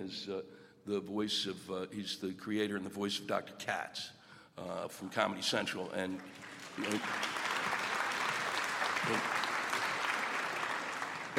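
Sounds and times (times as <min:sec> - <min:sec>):
speech: 0:00.0 - 0:07.4, 0:09.0 - 0:09.4
audience applause: 0:06.0 - 0:11.3.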